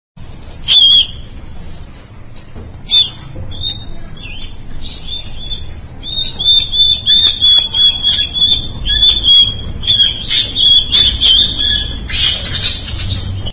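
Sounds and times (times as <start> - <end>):
mouse squeaking: 2.9 - 13.5.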